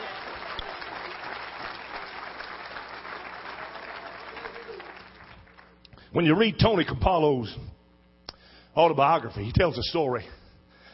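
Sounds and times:
audience clapping in praise: 0.0s - 5.9s
speech: 6.1s - 7.8s, 8.8s - 10.4s.

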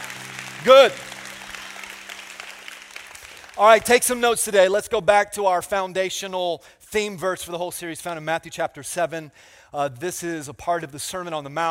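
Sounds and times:
audience applauding: 0.0s - 4.4s
speech: 0.6s - 1.1s, 3.6s - 11.6s.

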